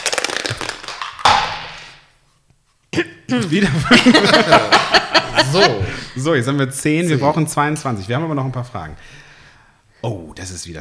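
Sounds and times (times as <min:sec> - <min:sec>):
dice rattling and landing: 0:00.0 - 0:02.1
speech: 0:03.0 - 0:09.2, 0:10.0 - 0:10.7
laughter: 0:03.0 - 0:09.4.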